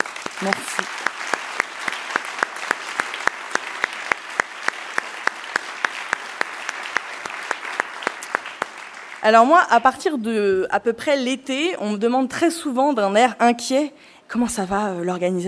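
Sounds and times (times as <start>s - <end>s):
audience applause: 0.0s - 9.4s
speech: 0.4s - 1.2s, 9.2s - 15.4s.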